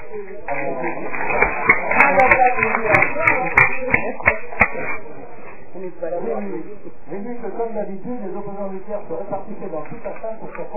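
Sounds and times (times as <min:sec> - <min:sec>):
murmur of crowd voices: 0:00.0 - 0:10.7
sharp distinct claps: 0:00.5 - 0:05.0
audience applause: 0:00.6 - 0:04.1
speech: 0:05.8 - 0:10.7.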